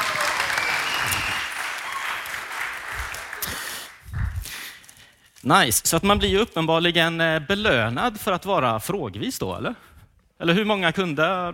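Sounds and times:
audience applause: 0.0s - 4.1s
speech: 5.4s - 11.5s.

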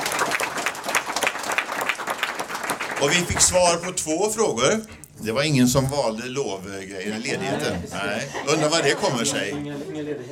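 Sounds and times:
audience applause at a public meeting: 0.0s - 4.0s
speech: 3.0s - 10.3s
laughter: 6.9s - 10.3s.

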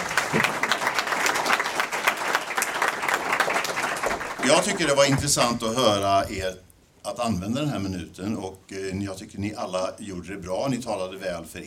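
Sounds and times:
audience applause: 0.0s - 5.4s
speech: 4.5s - 11.6s.

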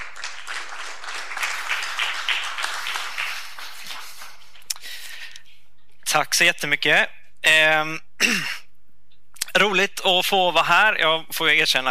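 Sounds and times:
audience applause: 0.0s - 4.7s
speech: 6.2s - 8.6s, 9.6s - 11.8s.

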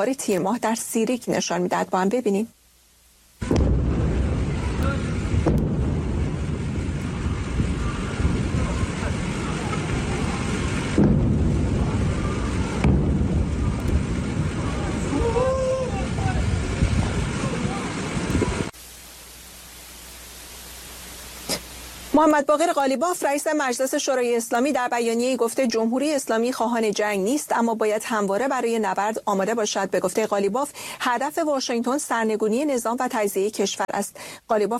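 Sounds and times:
speech: 0.0s - 2.6s, 22.2s - 34.7s
quiet hiss: 0.0s - 34.7s
explosions at night: 3.4s - 18.7s
loud rushing roar: 3.4s - 18.7s.

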